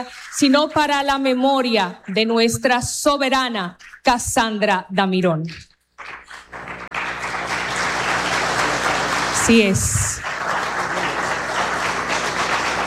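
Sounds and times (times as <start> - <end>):
speech: 0.0 - 6.7, 9.5 - 10.1
crowd applause: 6.0 - 12.8.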